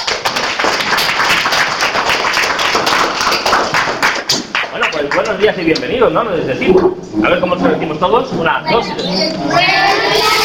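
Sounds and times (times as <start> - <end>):
audience applause: 0.0 - 5.4
speech: 5.3 - 10.3.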